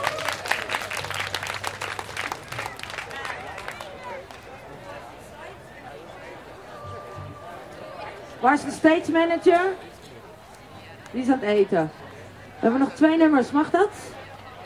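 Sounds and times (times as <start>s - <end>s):
audience applause: 0.0s - 4.6s
speech: 8.4s - 9.9s, 11.1s - 12.0s, 12.6s - 14.2s.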